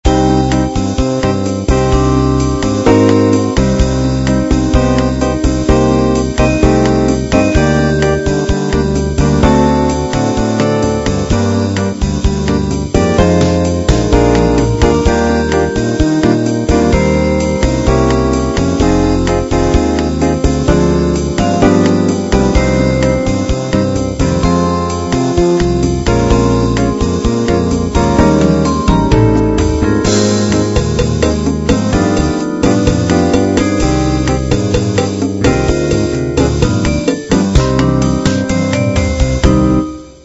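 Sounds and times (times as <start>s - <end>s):
bossa nova music: 0.0s - 40.2s.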